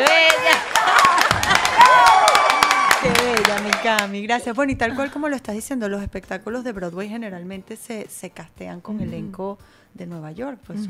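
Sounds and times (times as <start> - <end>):
audience applause: 0.0 - 4.1
speech: 4.0 - 10.8.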